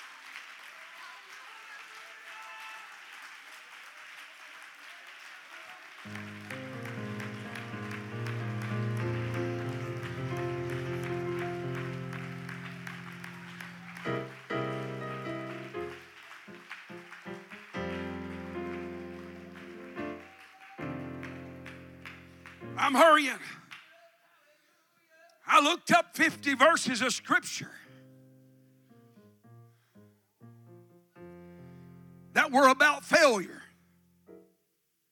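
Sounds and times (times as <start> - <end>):
people clapping hands in praise: 0.0 - 24.1
speech: 22.8 - 23.6, 25.6 - 27.8, 32.6 - 33.6.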